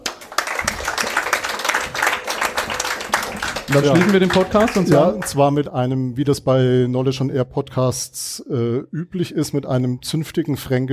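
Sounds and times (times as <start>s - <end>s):
audience applause: 0.0s - 5.4s
speech: 3.7s - 10.9s.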